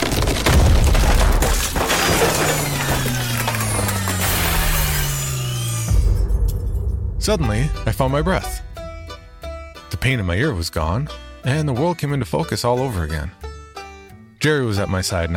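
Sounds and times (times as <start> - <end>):
building ceiling crashing down: 0.0 - 9.6
speech: 7.2 - 8.5, 10.0 - 13.4, 14.4 - 15.3.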